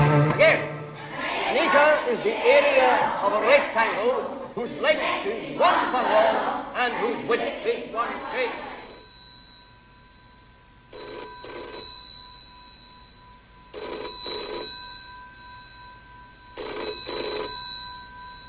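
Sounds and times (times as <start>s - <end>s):
faint steady hum: 0.2s - 18.4s
speech: 2.1s - 8.7s
old-style telephone bell ringing: 8.1s - 18.4s.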